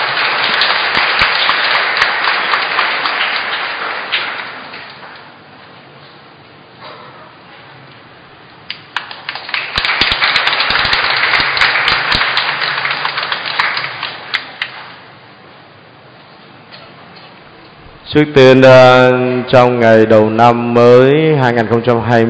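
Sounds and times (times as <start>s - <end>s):
audience applause: 0.0s - 5.4s, 8.8s - 15.0s
speech: 18.1s - 22.2s.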